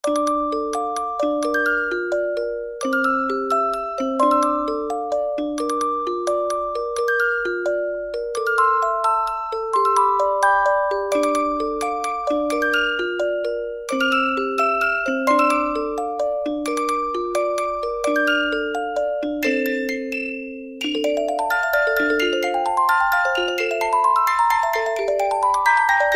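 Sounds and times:
music box: 0.0s - 26.1s.

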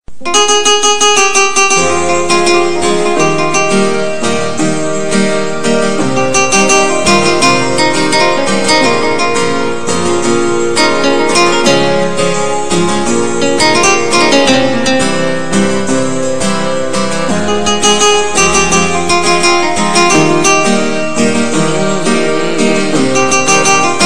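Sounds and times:
sad guitar ringtone: 0.2s - 24.0s.

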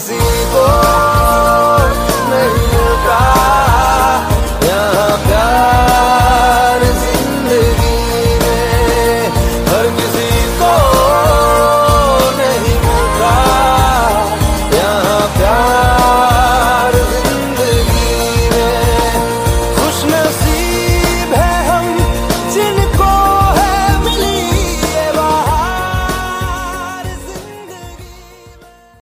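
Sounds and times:
Bollywood song ringtone: 0.0s - 29.0s.

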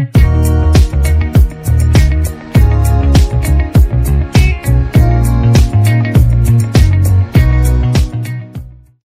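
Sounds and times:
instrumental ringtone: 0.2s - 8.7s.

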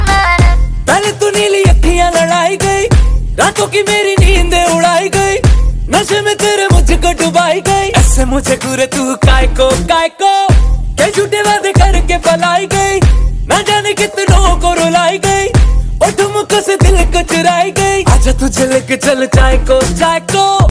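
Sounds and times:
Bollywood remix song ringtone: 0.0s - 20.6s.

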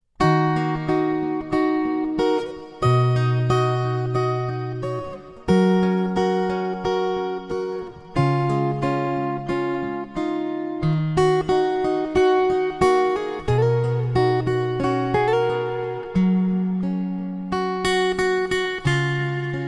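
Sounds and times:
guitar ringtone: 0.2s - 19.6s.

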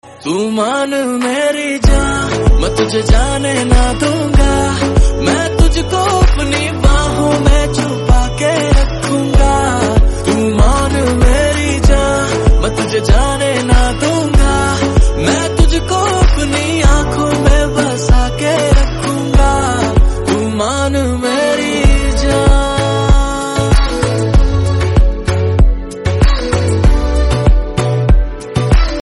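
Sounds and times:
Bollywood love song ringtone: 0.0s - 28.9s.

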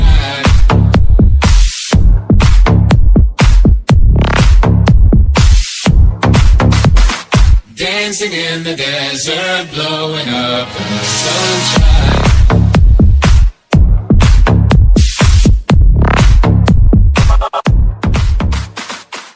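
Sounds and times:
English remix ringtone music: 0.0s - 8.5s, 10.2s - 19.3s.

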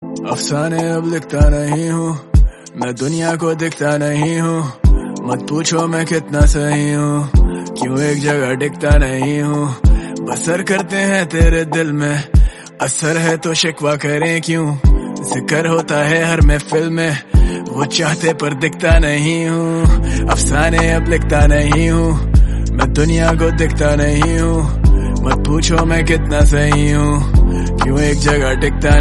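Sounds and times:
Bollywood rap song ringtone: 0.0s - 28.9s.

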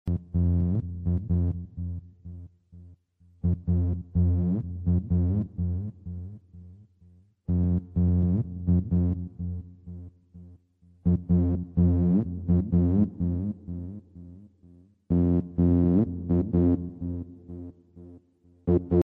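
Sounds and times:
bass: 0.0s - 19.0s.

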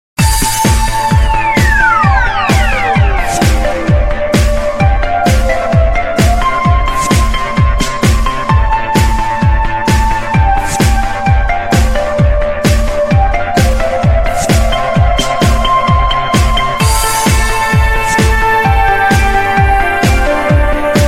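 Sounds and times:
theme remix ringtone: 0.2s - 9.1s, 9.8s - 21.0s.

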